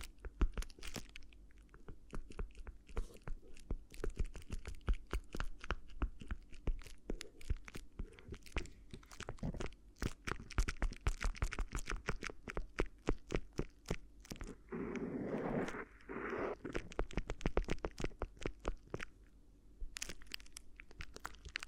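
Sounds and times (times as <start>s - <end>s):
crinkly ear massage: 0.0s - 21.6s.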